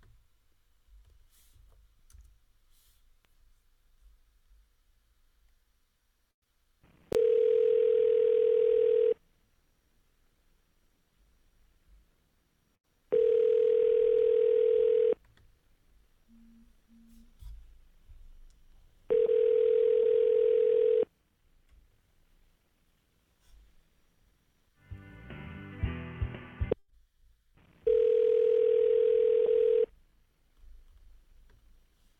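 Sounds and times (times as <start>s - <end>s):
telephone line ringing after dialing: 7.1s - 9.2s, 13.1s - 15.2s, 19.1s - 21.1s, 27.9s - 29.9s
music: 24.8s - 26.8s.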